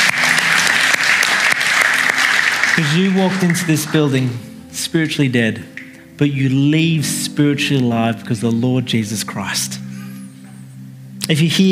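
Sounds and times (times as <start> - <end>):
audience applause: 0.0 - 4.4
speech: 2.8 - 9.8, 11.3 - 11.7.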